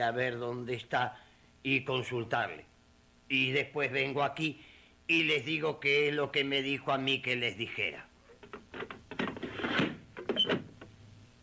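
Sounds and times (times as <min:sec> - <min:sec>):
speech: 0:00.0 - 0:02.7, 0:03.3 - 0:08.1
door closing: 0:08.4 - 0:10.9.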